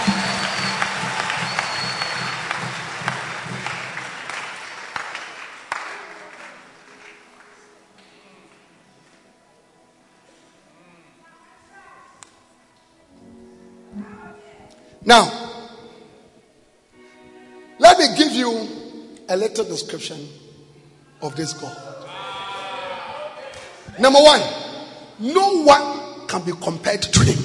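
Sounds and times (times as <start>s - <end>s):
crowd clapping: 0.0s - 7.8s, 23.1s - 23.8s
speech: 15.1s - 15.4s, 18.0s - 20.4s, 21.2s - 22.0s, 23.9s - 24.6s, 25.2s - 27.4s.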